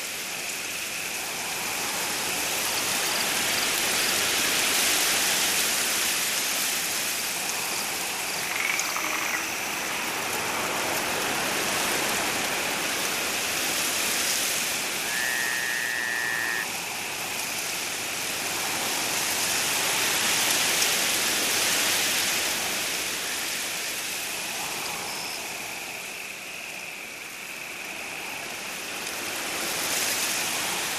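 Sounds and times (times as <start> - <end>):
forest insects at night: 0.0 - 30.9
forest leaves rustling at night: 0.0 - 30.9.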